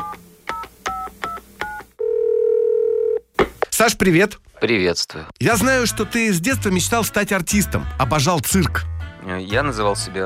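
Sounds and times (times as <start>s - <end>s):
continuous telephone tone: 0.0s - 3.2s
speech: 3.8s - 10.2s.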